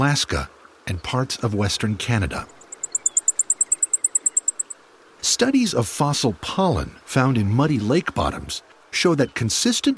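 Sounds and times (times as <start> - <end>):
speech: 0.0 - 2.6, 5.2 - 9.9
Blackpoll Warbler song: 2.4 - 4.8.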